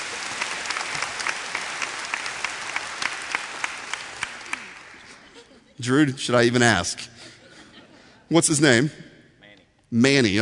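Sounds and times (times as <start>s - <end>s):
audience applause: 0.0s - 5.3s
laughter: 4.9s - 6.0s, 7.1s - 8.3s
speech: 5.8s - 7.1s, 8.3s - 9.1s, 9.9s - 10.3s.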